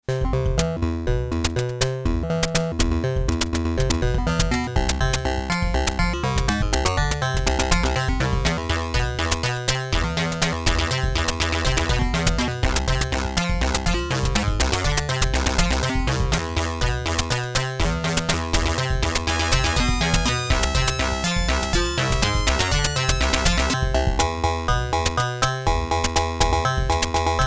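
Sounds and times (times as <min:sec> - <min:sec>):
synth arpeggio: 0:00.0 - 0:27.4.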